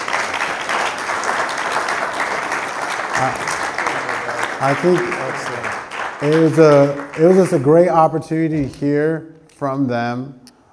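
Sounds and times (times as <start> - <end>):
audience applause: 0.0 - 8.0
speech: 3.2 - 3.6, 4.6 - 10.4.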